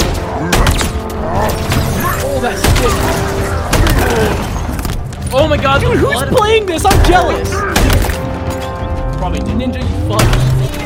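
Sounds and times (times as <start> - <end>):
game noise: 0.0 - 8.4
speech: 5.6 - 7.6, 9.2 - 10.5.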